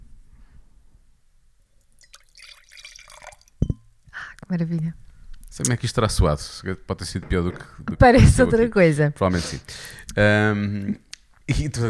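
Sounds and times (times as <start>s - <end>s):
wine pouring into a glass: 1.7s - 4.0s
glass or bottle being set down: 3.6s - 3.9s
speech: 4.5s - 11.8s.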